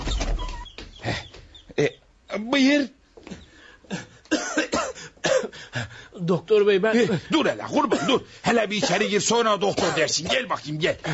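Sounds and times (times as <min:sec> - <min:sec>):
speech: 0:01.8 - 0:03.0, 0:05.8 - 0:11.1
coughing: 0:03.2 - 0:06.0, 0:07.0 - 0:11.1.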